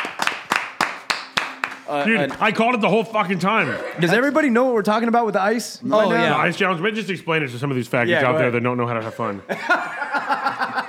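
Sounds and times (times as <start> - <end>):
hand clap: 0.0 - 2.5
speech: 1.9 - 10.4
laughter: 3.1 - 4.6, 8.8 - 10.8.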